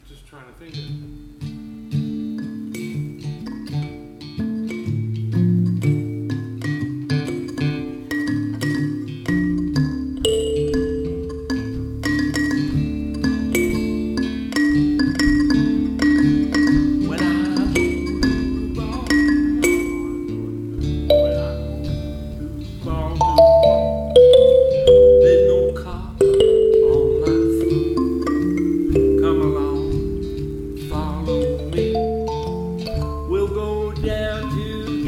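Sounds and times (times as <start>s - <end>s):
kalimba: 1.4s - 35.0s.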